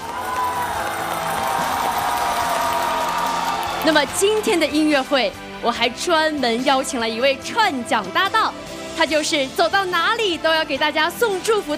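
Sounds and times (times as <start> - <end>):
audience applause: 0.0 - 4.9
speech: 3.8 - 11.7.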